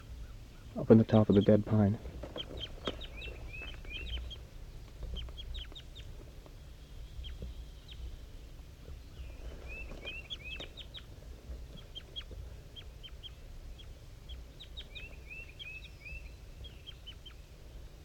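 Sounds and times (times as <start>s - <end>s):
two birds calling back and forth: 0.0s - 18.0s
speech: 0.8s - 2.1s.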